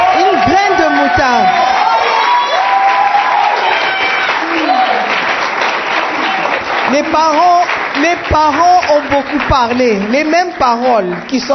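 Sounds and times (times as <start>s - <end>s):
congregation voices calling out and cheering: 0.0s - 5.3s
church congregation clapping: 0.0s - 11.5s
speech: 7.1s - 11.5s.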